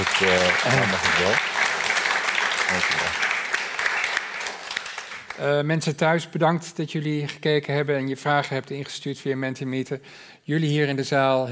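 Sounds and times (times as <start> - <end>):
laughter: 0.0 - 1.4
people applauding: 0.0 - 5.5
speech: 0.1 - 1.5, 2.7 - 3.3, 5.4 - 11.5.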